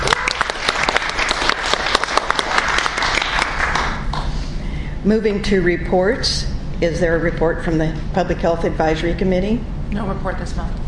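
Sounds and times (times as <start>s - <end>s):
applause: 0.0s - 4.3s
speech: 5.0s - 10.8s.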